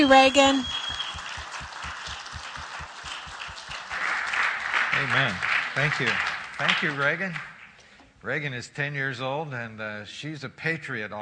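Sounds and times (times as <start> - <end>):
speech: 0.0 - 0.8, 5.0 - 7.5, 8.2 - 11.2
audience applause: 0.0 - 7.7.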